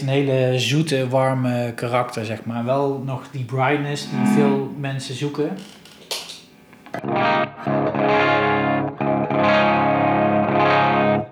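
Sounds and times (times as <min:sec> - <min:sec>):
speech: 0:00.0 - 0:05.8, 0:06.9 - 0:08.2
heavily distorted electric guitar playing chords, likely a Les Paul: 0:04.0 - 0:04.8, 0:07.0 - 0:11.3.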